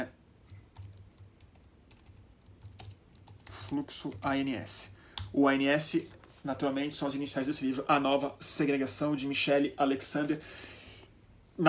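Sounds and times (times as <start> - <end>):
quiet keyboard typing entering a discount coupon code on a computer: 0.4 - 4.5
speech: 3.7 - 10.7.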